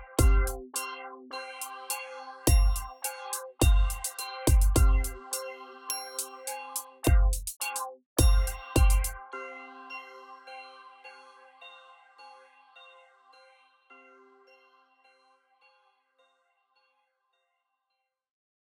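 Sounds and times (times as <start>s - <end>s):
trap bass: 0.0s - 0.6s
trap bells: 0.0s - 10.8s.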